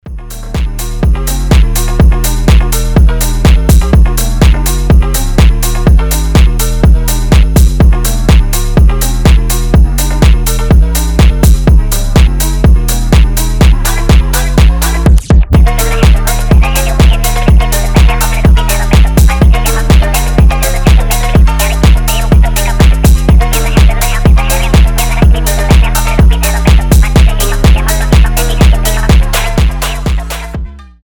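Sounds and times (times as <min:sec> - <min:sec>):
phonk house music: 0:00.0 - 0:31.0.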